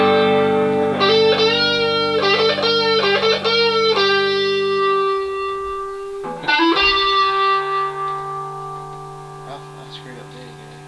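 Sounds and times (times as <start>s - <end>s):
music jam: 0.0s - 10.8s.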